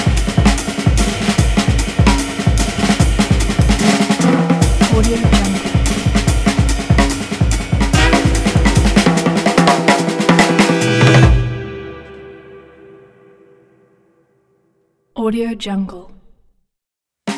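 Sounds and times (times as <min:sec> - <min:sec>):
fast jazz drums: 0:00.0 - 0:11.8.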